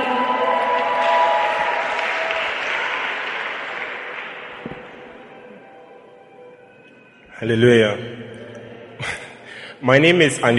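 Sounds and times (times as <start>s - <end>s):
congregation clapping after a testimony: 0.0s - 5.3s
speech: 7.4s - 8.1s, 9.8s - 10.5s.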